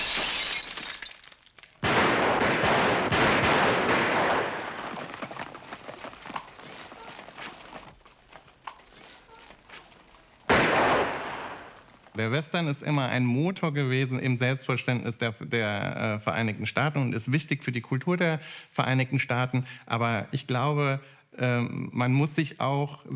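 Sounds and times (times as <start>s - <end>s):
gunfire in a western town: 1.8s - 5.3s, 10.5s - 11.9s
speech: 12.2s - 23.1s.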